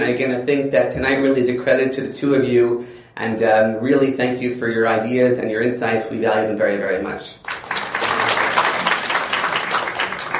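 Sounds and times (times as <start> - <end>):
speech: 0.0 - 7.5
audience applause: 7.4 - 10.3.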